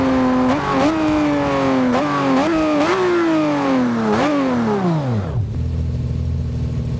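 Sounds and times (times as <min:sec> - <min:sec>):
vehicles throttling off: 0:00.0 - 0:06.9.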